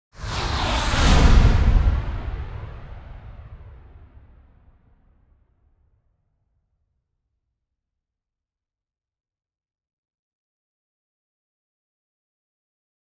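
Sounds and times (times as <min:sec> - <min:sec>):
short flanged transition whoosh: 0:00.2 - 0:04.0.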